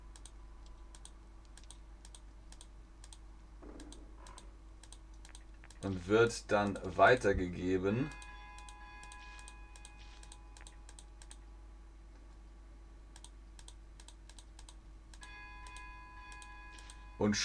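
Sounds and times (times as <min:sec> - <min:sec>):
low steady electrical hum: 0:00.0 - 0:17.4
rapid computer mouse clicking: 0:00.1 - 0:03.2, 0:03.8 - 0:06.0, 0:08.1 - 0:11.4, 0:13.1 - 0:17.0
speech: 0:05.8 - 0:08.2, 0:17.2 - 0:17.4.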